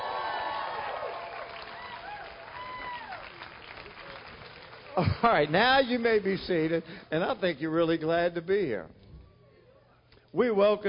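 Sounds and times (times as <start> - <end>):
audience clapping: 0.0 - 6.8
speech: 5.0 - 9.0, 10.3 - 10.8.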